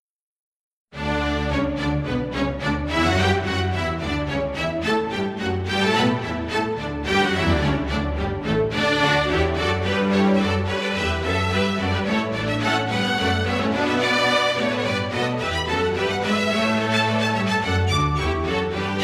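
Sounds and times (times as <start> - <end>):
instrumental orchestral mass music: 1.0 - 19.0.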